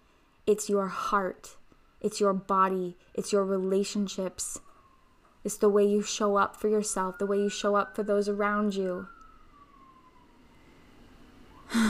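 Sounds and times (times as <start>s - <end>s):
speech: 0.5s - 4.7s, 5.4s - 9.2s
fire truck siren: 4.4s - 11.8s.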